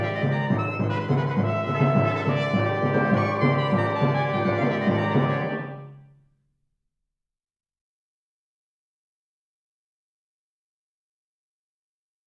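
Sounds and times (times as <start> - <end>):
menacing fanfare: 0.0 - 6.0.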